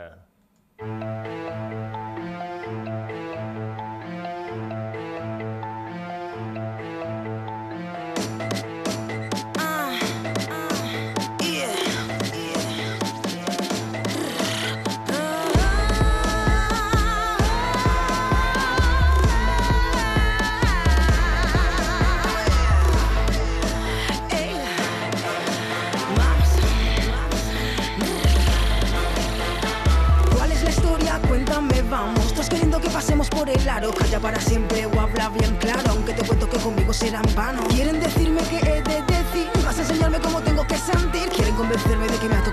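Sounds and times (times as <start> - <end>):
Latin dancehall afro trap: 8.5 - 42.5.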